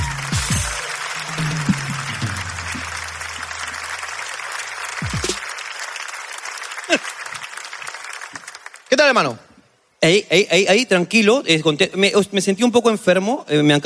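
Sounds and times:
audience applause: 0:00.0 - 0:09.1
speech: 0:09.1 - 0:13.8.

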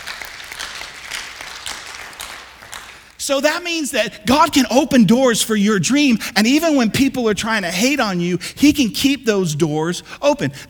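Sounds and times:
audience applause: 0:00.0 - 0:03.2
speech: 0:03.2 - 0:10.6.

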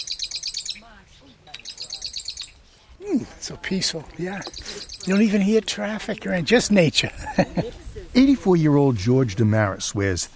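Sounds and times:
marsh wren chip calls: 0:00.0 - 0:02.7, 0:04.3 - 0:05.5
speech: 0:03.0 - 0:10.3
laughter: 0:07.0 - 0:08.1.

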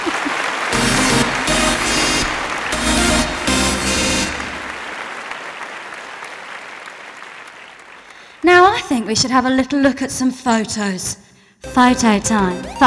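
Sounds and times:
audience applauding: 0:00.0 - 0:08.3
bright musical sting: 0:00.8 - 0:04.9, 0:11.7 - 0:12.8
speech: 0:09.1 - 0:12.8.

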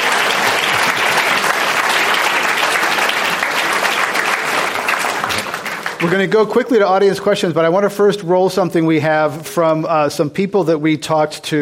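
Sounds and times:
audience applause at a live event: 0:00.0 - 0:07.2
speech: 0:06.0 - 0:11.6.

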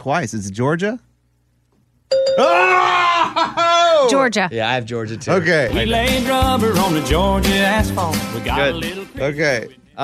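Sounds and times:
speech: 0:00.0 - 0:01.1, 0:02.4 - 0:10.0
game bell ringing: 0:02.1 - 0:02.6.

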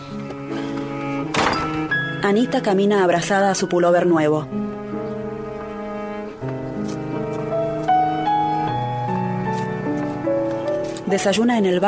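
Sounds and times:
sustained musical tones: 0:00.0 - 0:11.8
door closing: 0:00.6 - 0:02.1
speech: 0:02.2 - 0:04.6, 0:11.1 - 0:11.8.

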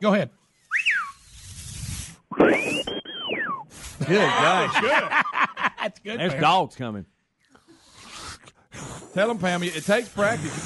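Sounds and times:
speech: 0:00.0 - 0:00.9, 0:02.4 - 0:03.0, 0:03.8 - 0:07.1, 0:08.7 - 0:10.6
person whistling with lips over teeth: 0:00.7 - 0:01.3, 0:02.4 - 0:03.8
laughter: 0:04.0 - 0:06.5.

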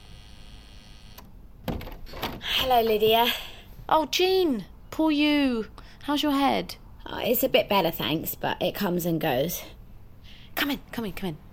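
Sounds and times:
door entry buzzer unlocking door: 0:00.0 - 0:02.3
speech: 0:02.6 - 0:09.8, 0:10.6 - 0:11.5.

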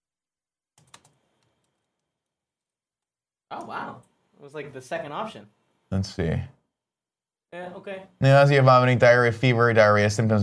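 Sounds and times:
computer keyboard keystrokes typing a web search: 0:00.8 - 0:02.4
speech: 0:03.5 - 0:06.6, 0:07.5 - 0:10.4.

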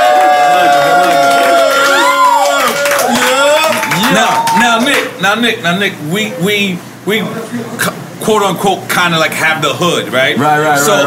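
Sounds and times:
crowd cheering and clapping: 0:00.0 - 0:05.2
speech: 0:05.2 - 0:11.0.

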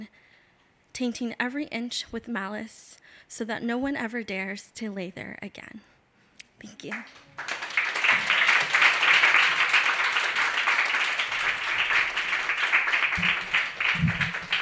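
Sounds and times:
speech: 0:01.0 - 0:05.9, 0:06.6 - 0:07.5
audience clapping after a reading: 0:06.9 - 0:14.6.

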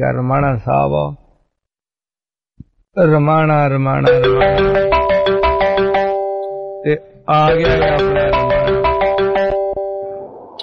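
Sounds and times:
speech: 0:00.0 - 0:01.2, 0:03.0 - 0:04.9, 0:06.8 - 0:08.4
melodic telephone ringtone: 0:04.0 - 0:10.2.

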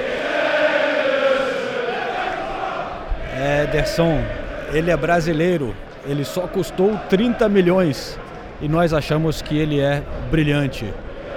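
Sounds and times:
football crowd singing a chant: 0:00.0 - 0:08.0, 0:11.0 - 0:11.3
speech: 0:03.7 - 0:11.0.

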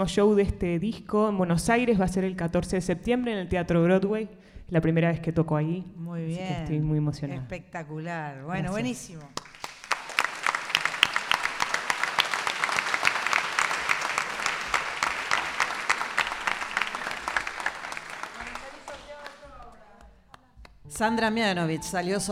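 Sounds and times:
speech: 0:00.0 - 0:09.5, 0:21.0 - 0:22.3
audience applause: 0:09.4 - 0:19.8.

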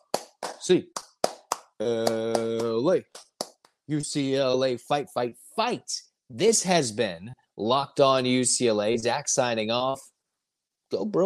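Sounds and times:
rhythmic group hand claps: 0:00.0 - 0:03.8
speech: 0:00.6 - 0:01.0, 0:01.8 - 0:03.3, 0:03.9 - 0:10.1, 0:10.9 - 0:11.2.

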